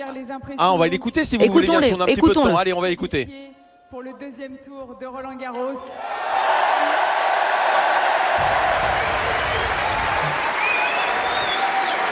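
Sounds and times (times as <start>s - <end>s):
speech: 0.0s - 7.1s
crowd applauding at tennis match: 6.0s - 12.0s.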